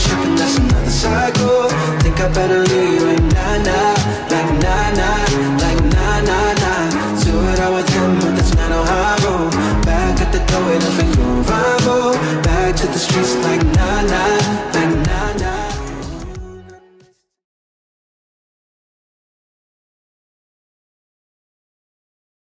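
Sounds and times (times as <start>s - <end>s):
Top40 pop music at 92 bpm: 0.0s - 17.2s.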